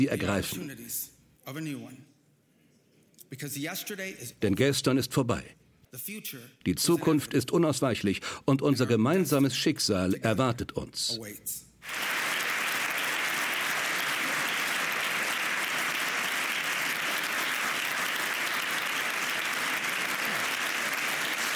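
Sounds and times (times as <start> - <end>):
speech: 0.0 - 2.1, 3.3 - 12.2
loud sustained applause from a large crowd: 11.8 - 21.5.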